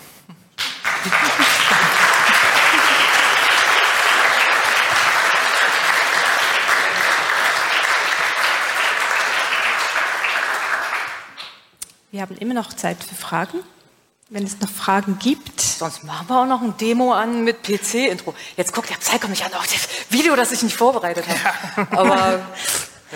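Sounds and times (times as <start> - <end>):
audience clapping: 0.6 - 11.4
laughter: 0.9 - 4.2, 21.2 - 22.5
speech: 1.0 - 1.3, 12.2 - 23.1.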